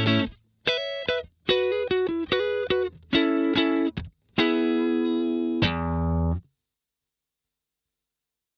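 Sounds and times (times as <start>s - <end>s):
blues music: 0.0s - 6.4s.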